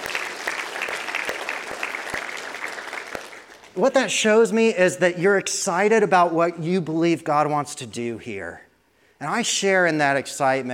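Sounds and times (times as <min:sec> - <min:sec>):
audience applause: 0:00.0 - 0:03.8
speech: 0:03.8 - 0:08.6, 0:09.2 - 0:10.7.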